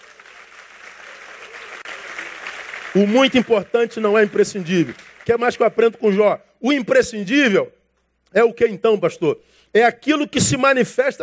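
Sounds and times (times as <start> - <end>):
audience applause: 0.0 - 5.8
speech: 2.9 - 11.2.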